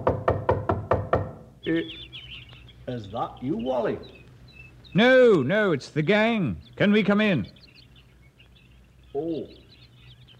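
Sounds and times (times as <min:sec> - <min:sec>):
knocking on a front door: 0:00.0 - 0:01.5
speech: 0:01.6 - 0:04.2, 0:04.9 - 0:07.6, 0:09.2 - 0:09.6.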